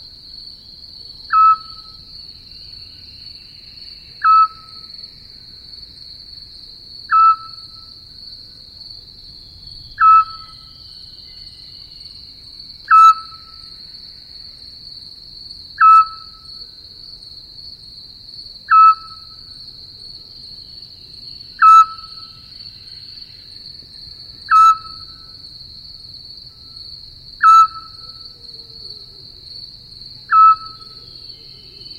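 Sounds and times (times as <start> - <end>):
insects keeping up a steady shrill drone: 0.0 - 31.9
Eurasian scops owl hooting mellow whistles: 1.3 - 1.9, 4.2 - 4.8, 7.1 - 7.7, 10.0 - 10.7, 12.9 - 13.6, 15.8 - 16.5, 18.7 - 19.3, 21.6 - 22.3, 24.5 - 25.2, 27.4 - 29.1, 30.3 - 31.5.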